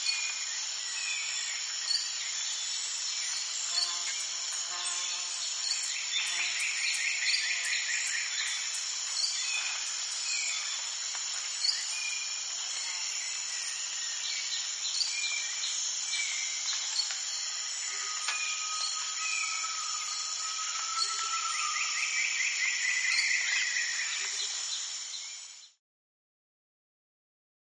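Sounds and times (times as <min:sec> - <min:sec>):
rainforest nighttime ambience: 0:00.0 - 0:25.8.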